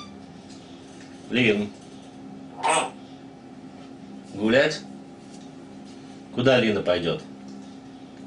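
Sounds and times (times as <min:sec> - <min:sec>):
quiet hum: 0:00.0 - 0:08.2
speech: 0:01.3 - 0:01.8, 0:04.4 - 0:04.9, 0:06.4 - 0:07.3
grey parrot squawk: 0:02.5 - 0:03.0.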